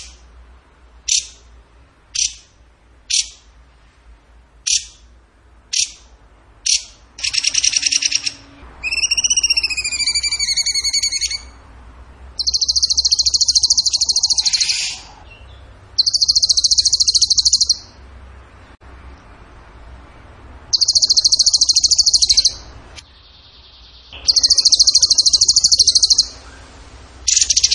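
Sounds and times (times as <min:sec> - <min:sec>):
bird singing a buzzy trill: 0:05.7 - 0:11.6, 0:12.4 - 0:18.0, 0:20.7 - 0:27.7.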